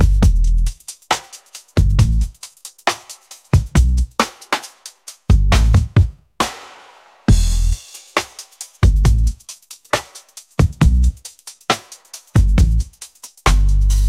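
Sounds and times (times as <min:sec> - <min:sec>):
garage bass music: 0:00.0 - 0:00.8, 0:01.8 - 0:02.4, 0:03.6 - 0:04.2, 0:05.3 - 0:06.0, 0:07.3 - 0:07.9, 0:08.8 - 0:09.4, 0:10.6 - 0:11.3, 0:12.4 - 0:14.0.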